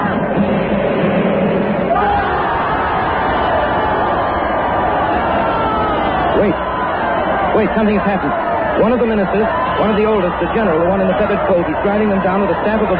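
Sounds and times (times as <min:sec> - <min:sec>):
crowd roaring and calling: 0:00.0 - 0:12.9
crowd shrieking: 0:01.8 - 0:12.9
speech: 0:07.6 - 0:12.9.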